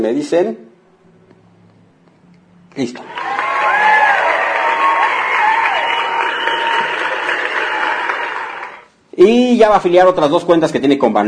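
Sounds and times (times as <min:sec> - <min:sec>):
speech: 0:00.0 - 0:00.7, 0:02.8 - 0:03.4, 0:09.2 - 0:11.2
applause sound effect: 0:03.0 - 0:08.9.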